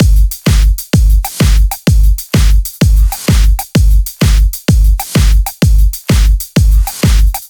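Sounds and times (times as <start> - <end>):
drum kit at 128 BPM: 0.0 - 7.4.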